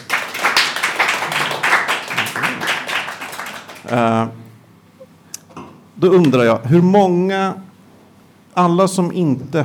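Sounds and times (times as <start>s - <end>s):
audience applause: 0.0s - 4.0s
speech: 3.8s - 4.4s, 6.0s - 7.7s, 8.6s - 9.6s.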